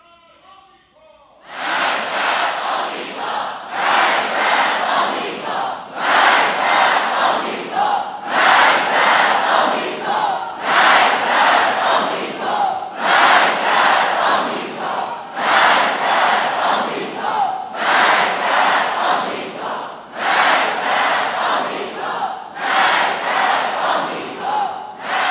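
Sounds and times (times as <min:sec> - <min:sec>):
large crowd chanting a slogan in unison: 0:01.4 - 0:25.2.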